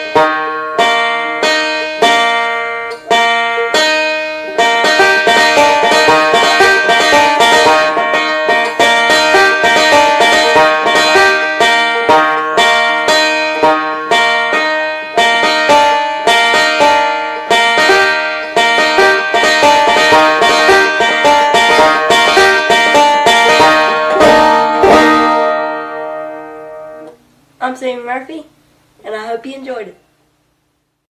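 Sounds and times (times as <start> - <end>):
banjo picking: 0.0 - 27.2.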